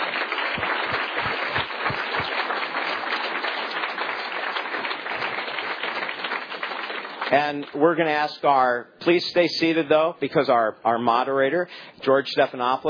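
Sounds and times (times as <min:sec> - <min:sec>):
audience applause: 0:00.0 - 0:07.6
speech: 0:07.3 - 0:12.8.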